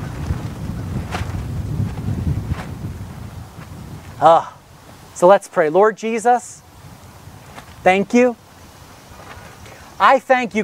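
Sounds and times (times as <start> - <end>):
strong wind buffeting the microphone outdoors: 0.0 - 5.3, 6.5 - 10.6
speech: 4.2 - 4.6, 5.2 - 6.6, 7.8 - 8.4, 10.0 - 10.6.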